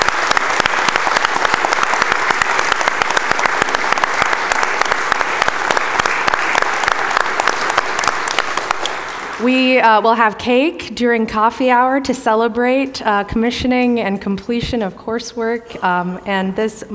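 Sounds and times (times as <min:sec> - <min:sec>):
audience applauding: 0:00.0 - 0:09.6
speech: 0:09.8 - 0:16.9.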